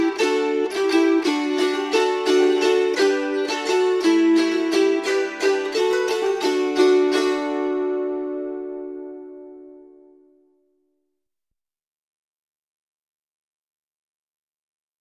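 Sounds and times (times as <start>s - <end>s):
polka music: 0.0s - 10.0s.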